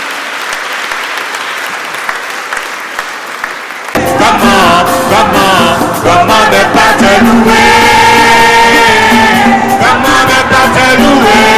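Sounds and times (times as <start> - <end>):
audience applause: 0.0 - 4.0
tuneful music: 4.0 - 11.5.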